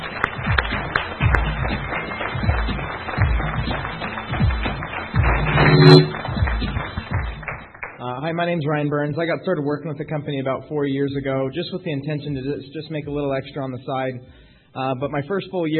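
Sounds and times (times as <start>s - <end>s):
audience applause: 0.0s - 8.0s
speech: 8.3s - 15.7s.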